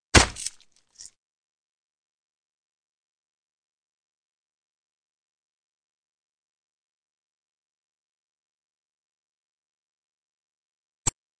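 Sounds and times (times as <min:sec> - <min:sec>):
fight sounds: 0:00.1 - 0:00.6.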